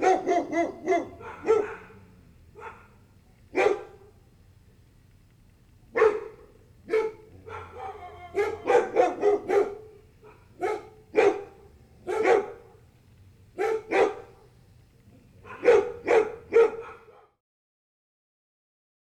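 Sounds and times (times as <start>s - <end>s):
several dogs barking: 0.0s - 4.2s, 5.9s - 12.9s, 13.6s - 14.6s, 15.3s - 17.4s.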